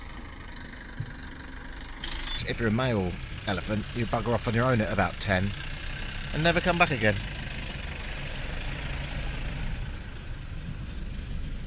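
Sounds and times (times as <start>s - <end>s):
vehicle engine idling: 0.0s - 11.6s
speech: 2.4s - 5.7s, 6.3s - 7.3s.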